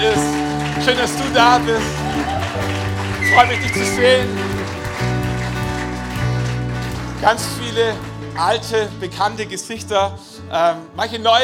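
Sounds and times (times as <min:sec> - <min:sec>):
audience applause: 0:00.0 - 0:08.3
speech: 0:00.8 - 0:02.7, 0:03.3 - 0:04.5, 0:07.2 - 0:11.4.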